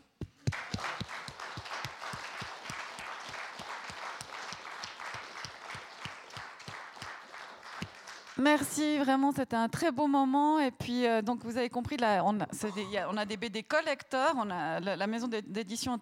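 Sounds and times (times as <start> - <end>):
audience applause: 0.5 - 8.4
speech: 8.4 - 16.0.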